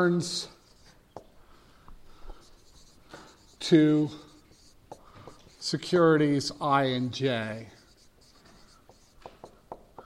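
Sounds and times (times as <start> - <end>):
speech: 0.0 - 0.6, 3.6 - 4.2, 5.6 - 7.8
pen writing math notes on paper: 0.6 - 1.3, 2.3 - 6.8, 7.5 - 10.0.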